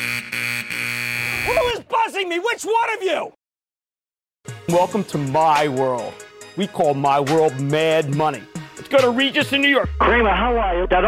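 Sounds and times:
buzzer: 0.0s - 1.7s
speech: 1.5s - 3.4s, 4.4s - 11.0s.

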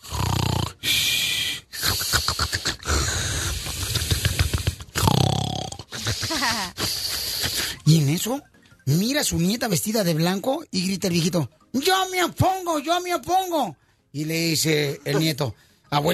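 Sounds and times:
voice imitating snoring of a sleeping old man: 0.0s - 7.8s
speech: 7.9s - 16.1s.

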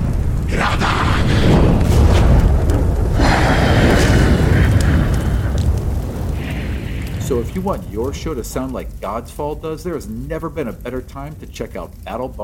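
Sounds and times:
booming bursts: 0.0s - 9.0s
crackling whooshes: 0.0s - 12.4s
fantasy fire elemental roaring in combat: 0.0s - 12.4s
speech: 7.4s - 12.4s.

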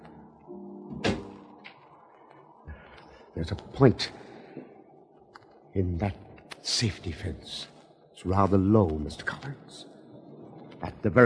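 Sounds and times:
terrace door opening and closing: 0.9s - 1.6s
speech: 3.4s - 4.2s, 5.8s - 9.9s, 10.8s - 11.2s.

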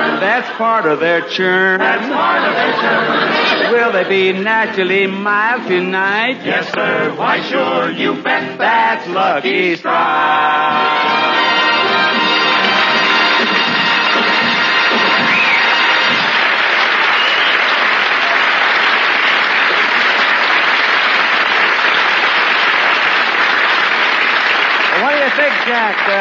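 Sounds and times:
speech: 0.4s - 11.4s, 25.4s - 26.1s
audience applause: 11.2s - 26.1s.

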